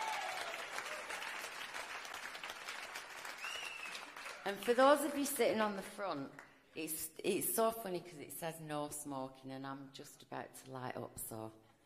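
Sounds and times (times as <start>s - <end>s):
audience applause: 0.0s - 5.3s
speech: 4.4s - 11.6s.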